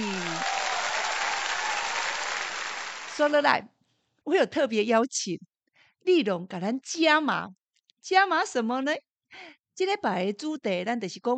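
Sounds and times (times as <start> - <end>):
audience applause: 0.0 - 3.4
speech: 3.2 - 11.3.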